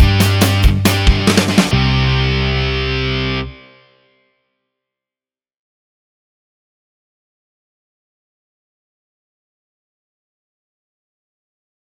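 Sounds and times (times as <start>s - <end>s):
backing track in C major: 0.0s - 3.8s.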